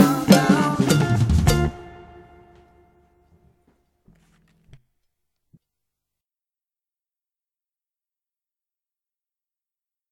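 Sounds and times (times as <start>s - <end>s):
drum kit beat: 0.0s - 2.4s.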